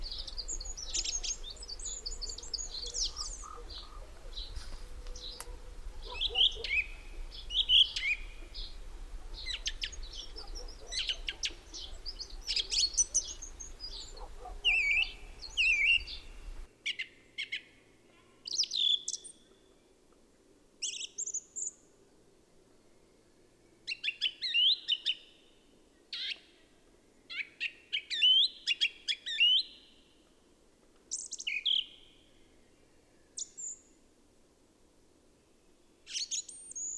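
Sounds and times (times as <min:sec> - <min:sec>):
Song thrush singing: 0:00.0 - 0:17.7, 0:22.7 - 0:30.2, 0:31.1 - 0:34.0, 0:35.6 - 0:36.9.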